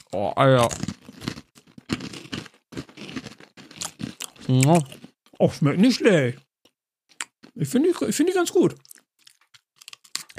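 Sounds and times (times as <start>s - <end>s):
large salty pretzel sticks crunched while eating: 0.0s - 5.0s, 8.8s - 10.3s
speech: 0.1s - 1.0s, 4.5s - 6.4s, 7.6s - 8.9s.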